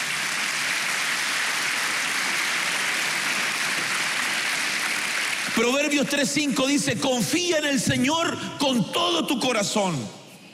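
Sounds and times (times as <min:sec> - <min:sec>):
audience clapping: 0:00.0 - 0:06.7
speech: 0:05.6 - 0:10.2.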